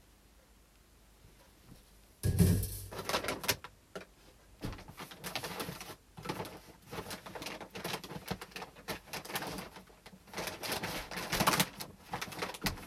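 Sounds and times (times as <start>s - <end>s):
hulled brown rice rustling and clattering in a sorting machine: 2.2s - 3.6s, 4.6s - 12.8s.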